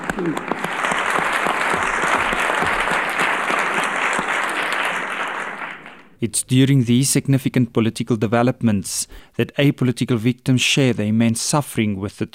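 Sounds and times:
applause in parliament: 0.0s - 6.2s
speech: 0.2s - 0.6s, 6.2s - 12.3s.

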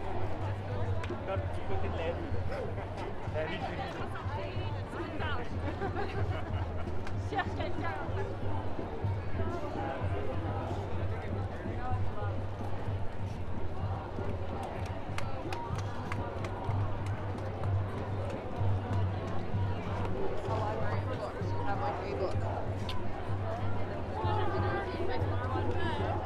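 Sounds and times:
many overlapping voices chattering and calling out at a street protest: 0.0s - 26.2s
laughter: 2.5s - 3.3s, 5.5s - 7.8s.

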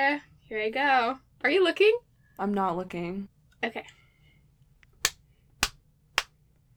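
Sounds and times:
speech: 0.0s - 4.0s
hands slapping skin: 5.0s - 6.4s.

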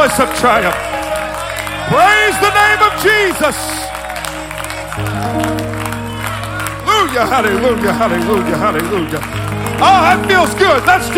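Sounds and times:
speech: 0.0s - 1.0s, 1.9s - 3.8s, 7.0s - 11.1s
audience clapping hands: 0.0s - 11.1s.

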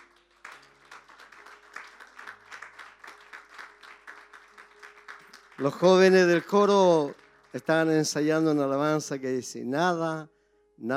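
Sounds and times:
large group applauding: 0.0s - 8.9s
speech: 5.6s - 10.9s.

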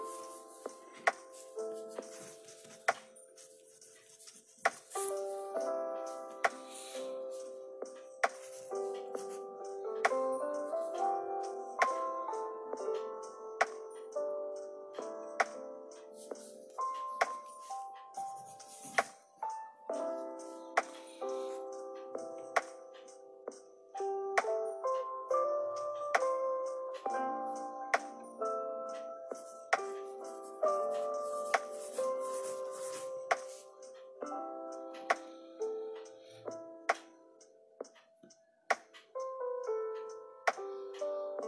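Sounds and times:
soft lofi melody of sustained mid-pitched notes: 0.0s - 41.4s.

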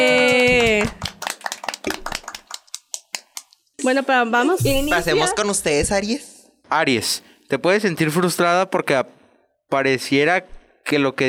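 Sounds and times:
applause: 0.0s - 3.6s
speech: 3.9s - 11.2s.

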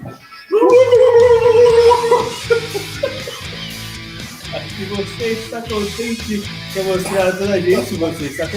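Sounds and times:
person imitating a turkey gobble: 0.0s - 2.7s
laughter: 0.0s - 8.5s
rough vocal noises: 0.0s - 8.5s
speech: 4.9s - 8.5s.

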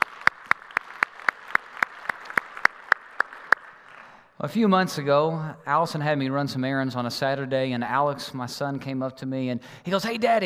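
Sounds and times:
church congregation clapping to welcome remote campuses: 0.0s - 4.4s
speech: 4.4s - 10.4s.

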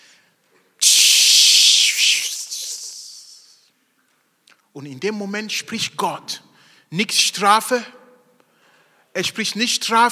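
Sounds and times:
voice imitating a sizzle of hot coal on lips: 0.8s - 3.7s
speech: 4.8s - 8.0s, 9.2s - 10.1s.

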